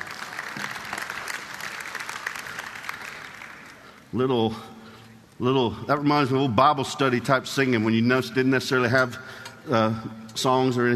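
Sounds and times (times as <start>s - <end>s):
audience applause: 0.0s - 4.1s
speech: 4.1s - 4.8s, 5.4s - 10.9s.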